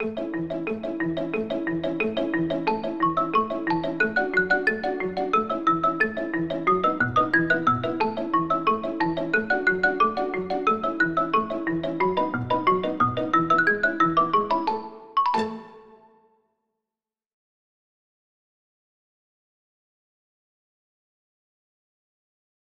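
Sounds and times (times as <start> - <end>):
upbeat theme music: 0.0 - 16.2.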